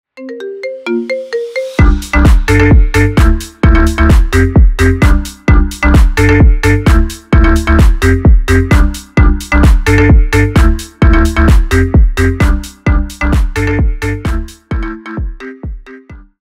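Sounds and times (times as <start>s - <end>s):
Brazilian phonk house ringtone: 0.4s - 16.4s.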